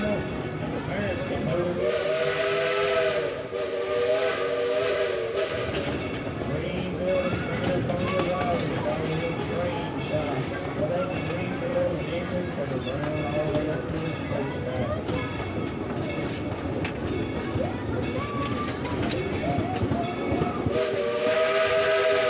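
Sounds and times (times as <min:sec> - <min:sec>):
1930s steam locomotive rumbling: 0:00.0 - 0:22.2
bright hissing bursts: 0:01.8 - 0:06.0, 0:20.7 - 0:22.2
wheels clattering on the rails: 0:05.3 - 0:21.7.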